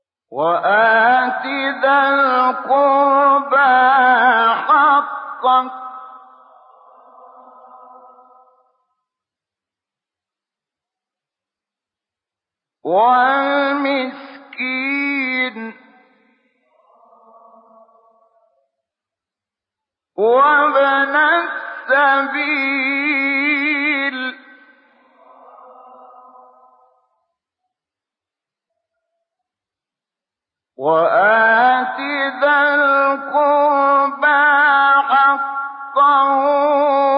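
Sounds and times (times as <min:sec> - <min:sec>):
recitation of a Quran verse: 0:00.3 - 0:09.3, 0:12.8 - 0:19.0, 0:20.2 - 0:27.6, 0:30.8 - 0:37.1.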